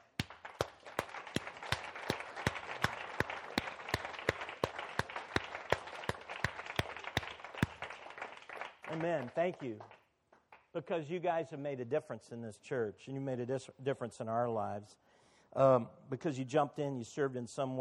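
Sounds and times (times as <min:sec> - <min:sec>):
congregation applauding in a church: 0:00.0 - 0:10.0
speech: 0:09.0 - 0:10.0, 0:10.8 - 0:17.7.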